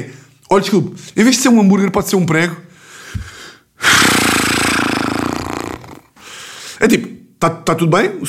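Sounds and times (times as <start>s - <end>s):
speech: 0.0s - 3.2s, 6.8s - 8.2s
imitation of a man huffing and snorting: 3.1s - 6.2s.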